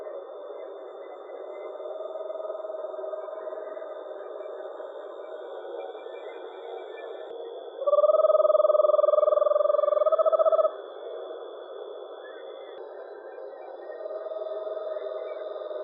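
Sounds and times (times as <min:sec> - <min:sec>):
Eastern screech owl delivering a low pulsed trill: 0:07.8 - 0:10.8.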